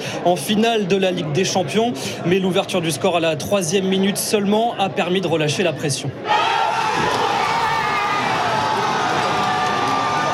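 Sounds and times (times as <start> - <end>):
speech: 0.2 - 6.6
football fans cheering a goal by Ousmane Dembélé in a bar: 6.2 - 10.3.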